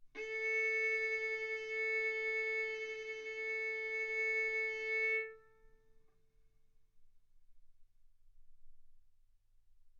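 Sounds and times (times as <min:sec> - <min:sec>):
violin bowed mezzo-forte on the A string, A4 and B4: 0:00.2 - 0:05.6.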